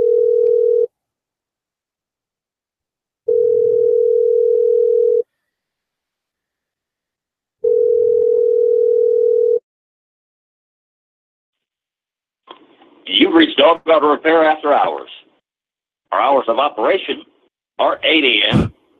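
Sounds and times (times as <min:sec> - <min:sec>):
muffled fake telephone ringback tone: 0:00.0 - 0:00.9, 0:03.3 - 0:05.2, 0:07.6 - 0:09.6
speech: 0:13.3 - 0:15.3, 0:16.1 - 0:18.7.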